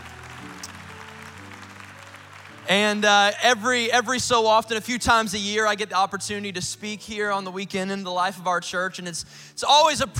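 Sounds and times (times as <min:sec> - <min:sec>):
audience clapping: 0:00.0 - 0:04.0
speech: 0:02.7 - 0:10.1.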